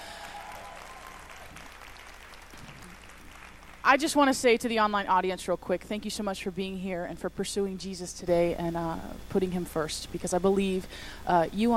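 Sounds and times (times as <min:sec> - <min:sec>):
faint voices and cheers: 0:00.0 - 0:01.7
audience clapping: 0:00.0 - 0:03.9
speech: 0:03.8 - 0:11.7.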